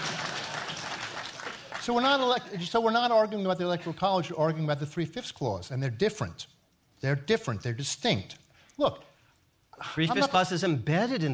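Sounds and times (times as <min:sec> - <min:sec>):
audience applause: 0:00.0 - 0:02.7
speech: 0:01.8 - 0:09.1, 0:09.8 - 0:11.3.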